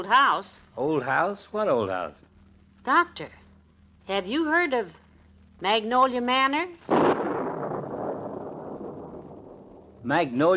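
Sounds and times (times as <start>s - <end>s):
speech: 0.0s - 3.4s, 4.1s - 5.0s, 5.6s - 7.0s, 10.1s - 10.5s
thunderclap: 6.8s - 10.2s.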